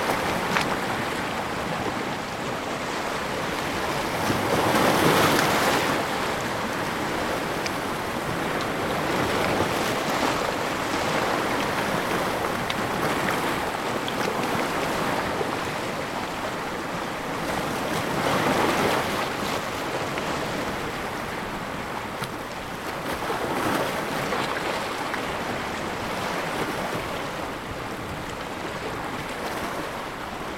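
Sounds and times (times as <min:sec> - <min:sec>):
ocean waves on rocks: 0:00.0 - 0:30.5.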